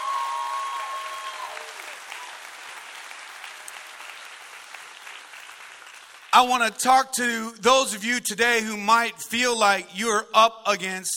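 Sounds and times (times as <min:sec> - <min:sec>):
crowd applause: 0:00.0 - 0:06.7
speech: 0:06.4 - 0:11.1.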